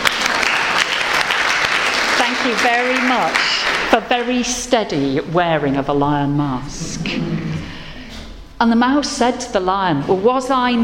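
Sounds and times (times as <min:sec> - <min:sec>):
audience applause: 0:00.0 - 0:04.0
speech: 0:02.4 - 0:07.8, 0:08.6 - 0:10.8.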